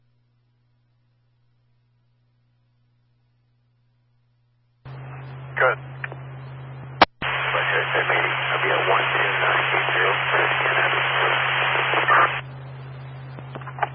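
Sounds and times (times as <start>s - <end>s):
radio static: 4.9s - 13.9s
speech: 5.6s - 5.9s.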